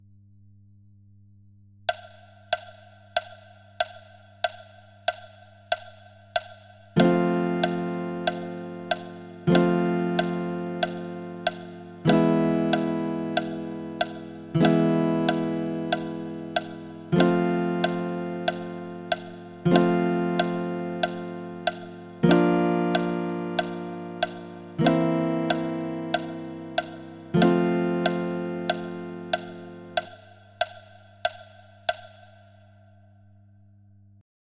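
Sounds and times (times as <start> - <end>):
click track: 1.9 - 32.4
incidental guitar music: 7.0 - 30.2.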